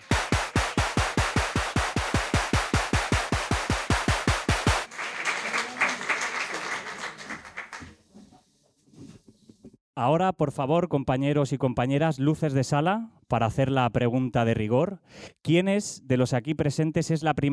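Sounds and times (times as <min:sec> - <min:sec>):
audience applause: 0:00.0 - 0:07.9
speech: 0:10.0 - 0:17.5.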